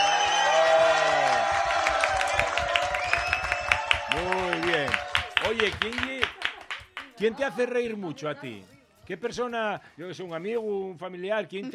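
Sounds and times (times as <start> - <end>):
audience applause: 0.0 - 7.2
speech: 7.2 - 11.7.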